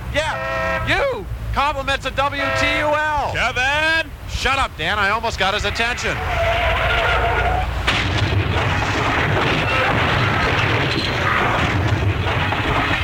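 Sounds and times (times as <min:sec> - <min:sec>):
speech: 0:00.2 - 0:06.6
car skidding and crashing: 0:06.0 - 0:13.0
clattering debris: 0:07.8 - 0:13.0.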